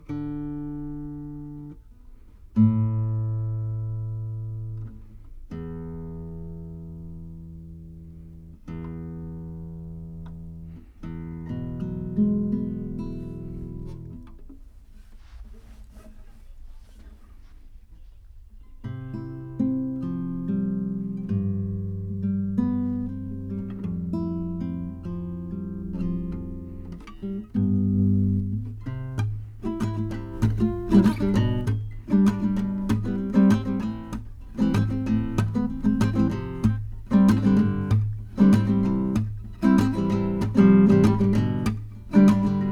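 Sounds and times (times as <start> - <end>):
guitar through tape: 0.0 - 14.6, 18.6 - 42.7.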